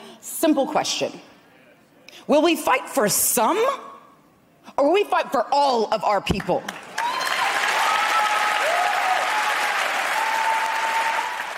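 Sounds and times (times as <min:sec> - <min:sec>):
speech: 0:00.4 - 0:01.3, 0:02.3 - 0:03.9, 0:04.8 - 0:06.8
large crowd applause after a speech: 0:06.8 - 0:11.5
whistles and cheers: 0:07.0 - 0:11.5.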